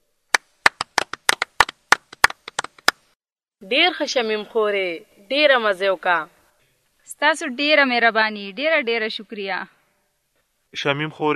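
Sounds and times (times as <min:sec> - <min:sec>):
people clapping hands to thank the cook: 0:00.3 - 0:03.1
speech: 0:03.6 - 0:06.4, 0:07.1 - 0:09.8, 0:10.7 - 0:11.3.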